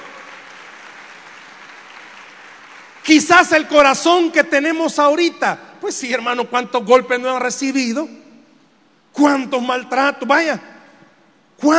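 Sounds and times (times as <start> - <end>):
audience applause: 0.0 - 3.0
speech: 3.1 - 8.2, 9.2 - 10.7, 11.6 - 11.7.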